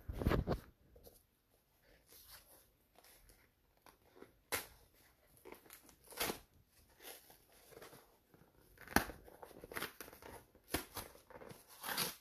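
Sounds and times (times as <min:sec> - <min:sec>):
long perforated cardboard box being torn open: 0:04.1 - 0:12.1.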